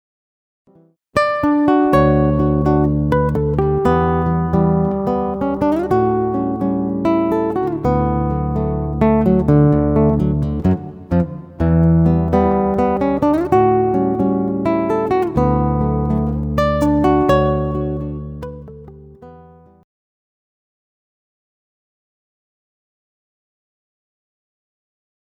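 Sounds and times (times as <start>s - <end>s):
guitar solo: 1.2s - 19.8s.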